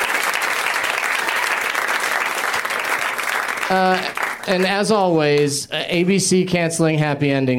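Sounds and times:
audience applause: 0.0 - 5.1
speech: 3.7 - 7.5.

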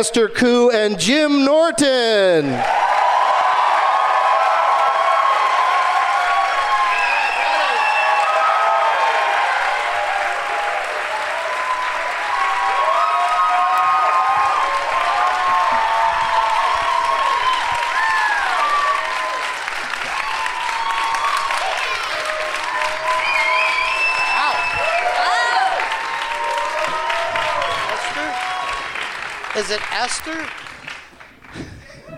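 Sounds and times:
speech: 0.0 - 2.9, 29.6 - 30.6
shouted cheers: 2.4 - 29.2
crowd applauding: 2.4 - 32.1
whoops and whistles: 22.9 - 25.2.

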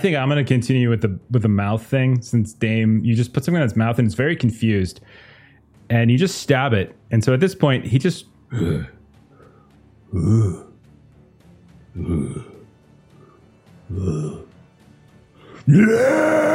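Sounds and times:
speech: 0.0 - 5.3, 5.9 - 9.0, 10.1 - 10.6, 12.0 - 12.5, 13.9 - 14.5, 15.7 - 16.5
voice imitating Tyrannosaurus Rex roar: 10.1 - 10.8, 12.0 - 12.6, 13.9 - 14.5, 15.6 - 16.5.

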